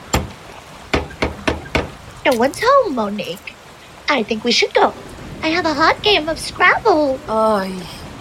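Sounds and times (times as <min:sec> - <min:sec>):
heavy gargoyle-shaped door knocker knocking: 0:00.9 - 0:02.0
speech: 0:02.3 - 0:03.5, 0:04.1 - 0:08.2.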